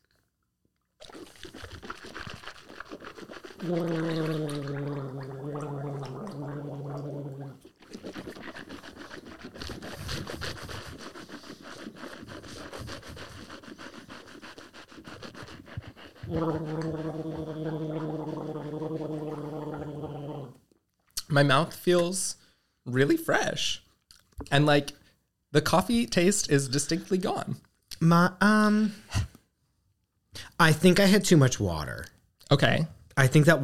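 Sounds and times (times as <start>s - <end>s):
person gargling liquid: 1.0s - 9.6s, 16.2s - 20.6s
speech: 3.6s - 4.9s, 21.4s - 23.8s, 24.5s - 29.3s, 30.6s - 33.6s.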